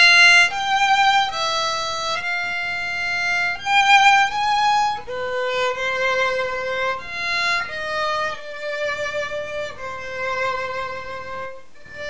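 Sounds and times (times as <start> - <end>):
violins: 0.0 - 12.0.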